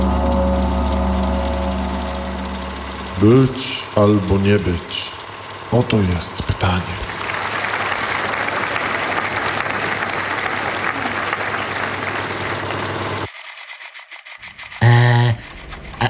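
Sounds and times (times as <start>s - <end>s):
loud buzzing tone: 0.0s - 5.8s, 14.7s - 16.0s
speech: 3.2s - 5.1s, 5.7s - 7.0s
crowd clapping: 6.9s - 13.3s.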